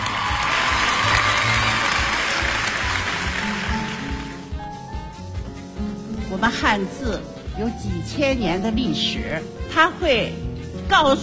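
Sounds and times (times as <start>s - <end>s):
audience applause at a back-to-school First Lesson event: 0.0s - 4.6s
speech: 6.4s - 11.2s.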